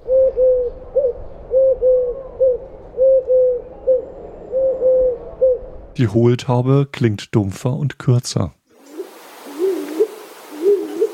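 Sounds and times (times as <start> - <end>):
Eurasian collared dove call: 0.0 - 5.7, 8.8 - 11.1
speech: 6.0 - 8.6.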